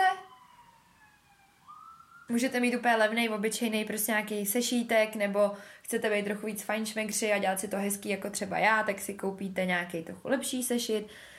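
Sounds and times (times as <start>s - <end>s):
emergency vehicle siren passing outside: 0.0s - 2.6s
speech: 2.3s - 11.3s.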